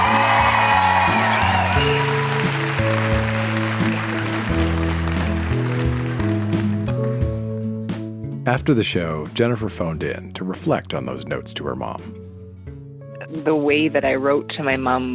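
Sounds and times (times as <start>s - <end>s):
audience clapping and whooping: 0.0s - 7.4s
speech: 8.5s - 12.2s, 13.4s - 15.1s.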